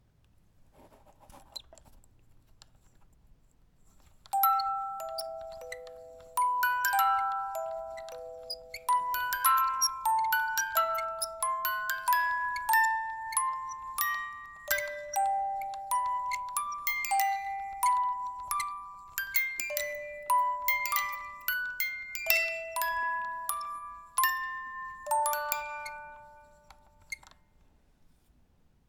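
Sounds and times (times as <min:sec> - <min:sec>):
music box: 0:04.3 - 0:27.4.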